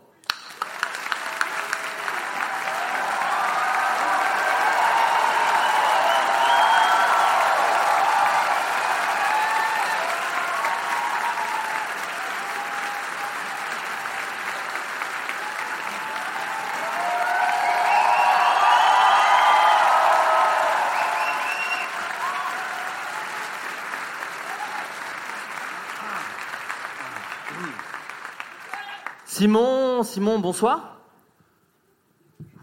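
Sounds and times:
audience applause: 0.2 - 29.5
speech: 29.4 - 30.9.

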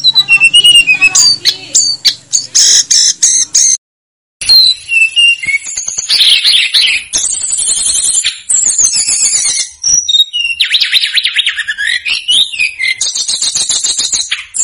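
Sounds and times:
snowy-browed flycatcher singing a medley of chips and whistles: 0.0 - 3.8, 4.4 - 14.6.

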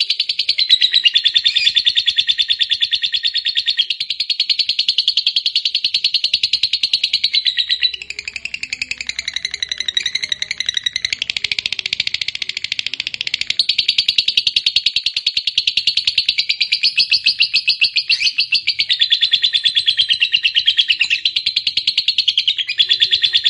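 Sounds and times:
fighter-type lovebird giving harsh shrill chirps and buzzy chatter: 0.0 - 12.6, 13.2 - 23.4.

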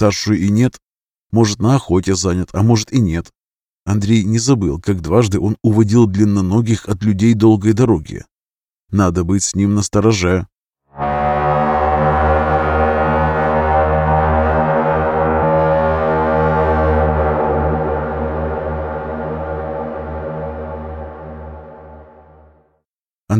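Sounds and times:
speech: 0.0 - 8.3, 8.9 - 11.2
horn being blown: 10.9 - 22.7.

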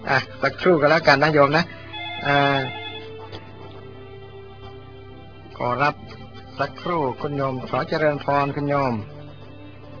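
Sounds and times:
speech: 0.0 - 2.8, 5.6 - 9.1
telephone ringing with incoming call: 1.8 - 3.4.

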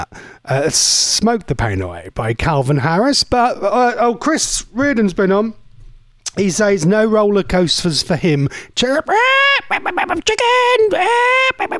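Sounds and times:
speech: 0.0 - 5.6, 6.3 - 11.7
chicken clucking sound effect: 9.7 - 10.2, 11.5 - 11.7.

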